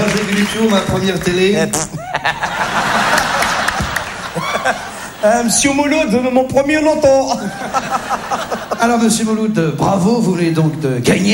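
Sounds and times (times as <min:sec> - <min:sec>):
audience applause: 0:00.0 - 0:01.5, 0:02.3 - 0:05.1
speech: 0:00.1 - 0:03.0, 0:04.6 - 0:11.3
laughter: 0:01.9 - 0:05.5, 0:07.2 - 0:09.2.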